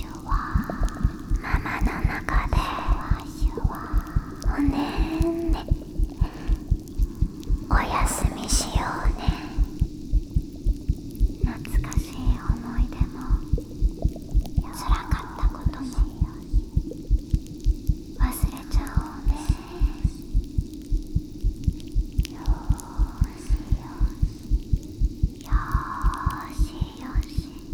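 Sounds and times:
person whispering: 0:00.0 - 0:10.0, 0:11.4 - 0:13.8, 0:14.6 - 0:16.9, 0:18.2 - 0:20.4, 0:22.2 - 0:24.6, 0:25.4 - 0:27.7
carbonated drink fizzing: 0:00.0 - 0:27.7
heartbeat: 0:00.0 - 0:27.7.

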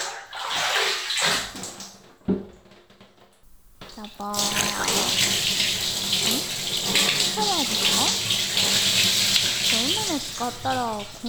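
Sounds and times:
rinsing water poured from a hand bucket: 0:00.0 - 0:01.9, 0:03.5 - 0:11.2
speech: 0:04.0 - 0:05.7, 0:07.4 - 0:08.4, 0:10.1 - 0:11.2.

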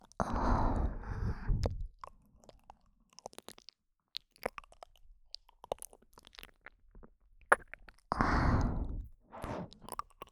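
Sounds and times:
ear licking in right ear: 0:00.2 - 0:01.7, 0:08.1 - 0:09.9.

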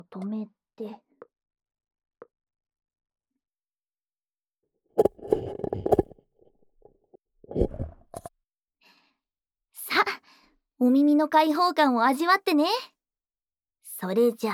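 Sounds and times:
speech: 0:00.0 - 0:01.1, 0:05.0 - 0:05.6, 0:10.8 - 0:12.9, 0:14.0 - 0:14.5
paper cups scraping as lifted off the ears: 0:05.0 - 0:06.2.

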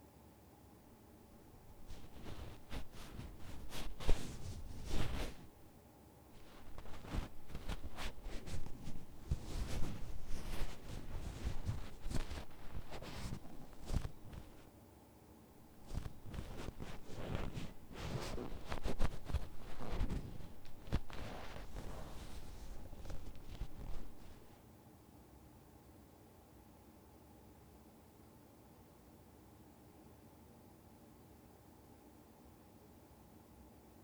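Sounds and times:
left ear cleaning ASMR: 0:01.5 - 0:05.6, 0:06.4 - 0:14.6, 0:15.7 - 0:24.5.

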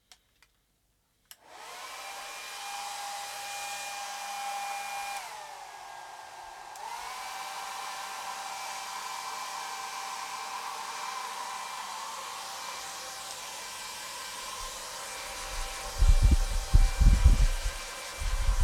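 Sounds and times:
hair dryer: 0:01.4 - 0:18.6.

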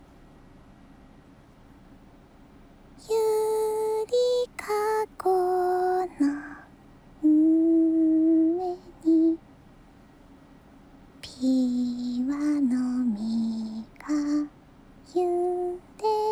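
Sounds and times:
person singing a lullaby: 0:03.0 - 0:09.4, 0:11.2 - 0:16.3.

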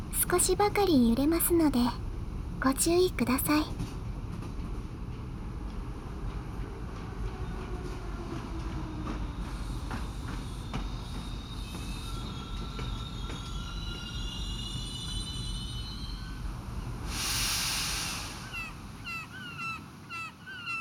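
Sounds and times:
train rumbling along rails: 0:00.0 - 0:20.5
speech: 0:00.2 - 0:02.0, 0:02.6 - 0:04.0
train brakes hissing and squealing: 0:08.4 - 0:19.3.

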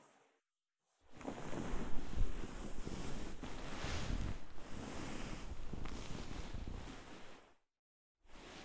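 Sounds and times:
large cotton swab in ear: 0:01.1 - 0:07.5.

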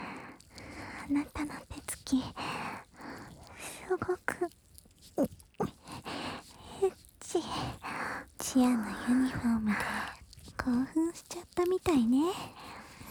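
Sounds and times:
ear licking sounds: 0:00.0 - 0:13.0.

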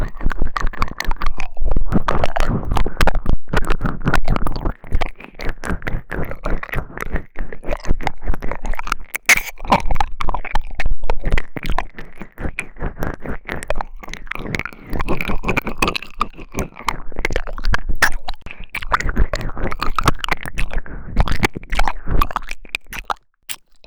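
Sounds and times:
ear licking in the right ear: 0:00.0 - 0:23.8.

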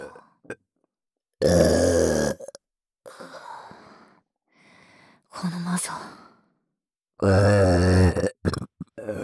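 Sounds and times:
speech: 0:01.4 - 0:01.8, 0:07.2 - 0:07.6
burp: 0:01.4 - 0:02.6, 0:07.2 - 0:09.1.

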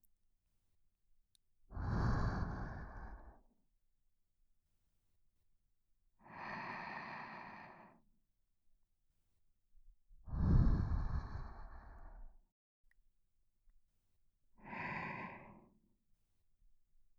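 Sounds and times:
person breathing in sleep: 0:01.7 - 0:03.5, 0:06.2 - 0:08.1, 0:10.3 - 0:12.4, 0:14.6 - 0:15.9.

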